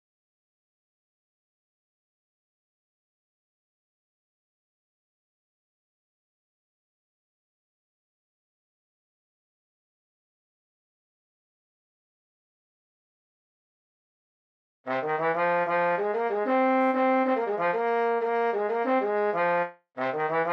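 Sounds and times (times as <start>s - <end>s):
trombone: 14.9s - 20.5s.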